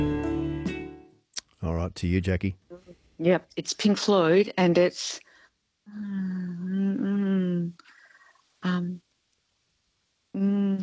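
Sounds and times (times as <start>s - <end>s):
speech: 1.9s - 2.6s, 3.2s - 5.2s, 5.9s - 7.0s, 8.6s - 9.0s, 10.4s - 10.8s
person humming a song's tune: 5.9s - 7.8s, 10.4s - 10.8s.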